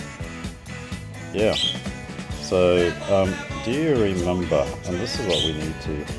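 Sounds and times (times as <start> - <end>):
speech: 1.3 - 1.9, 2.5 - 6.1
pet budgerigar chirping and chattering: 1.4 - 1.9, 5.1 - 5.7.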